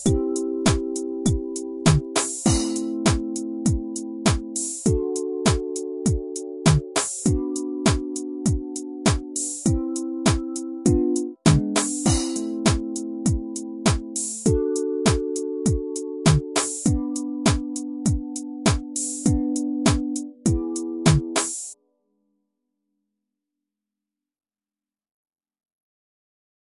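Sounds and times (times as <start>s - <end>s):
music groove without bass: 0.0s - 21.7s.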